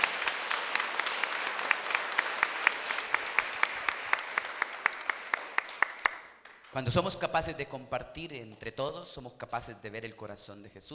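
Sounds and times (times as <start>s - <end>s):
audience applause: 0.0s - 6.7s
speech: 6.8s - 10.9s.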